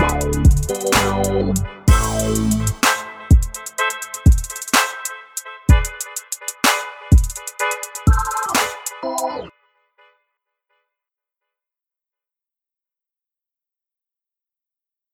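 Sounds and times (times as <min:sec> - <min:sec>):
carnival big beat music: 0:00.0 - 0:09.4.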